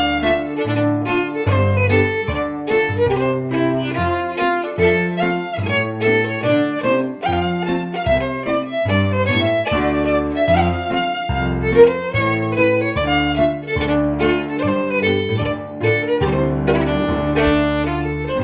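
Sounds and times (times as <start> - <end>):
cello: 0.0 - 18.4
fiddle: 0.0 - 18.4
piano: 0.0 - 18.4.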